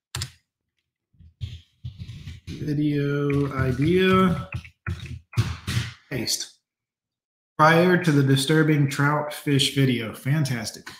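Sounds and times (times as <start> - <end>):
computer keyboard typing: 0.1 - 0.4, 1.2 - 6.0
speech: 2.6 - 4.7, 6.1 - 6.6, 7.6 - 10.9.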